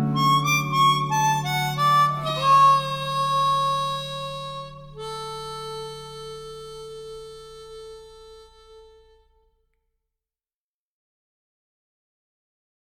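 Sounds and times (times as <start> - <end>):
harmonica: 0.0 - 9.4.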